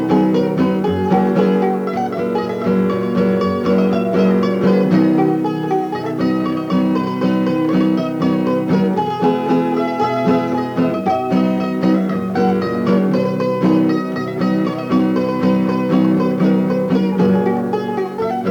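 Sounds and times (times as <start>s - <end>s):
mandolin playing polka: 0.0s - 18.5s.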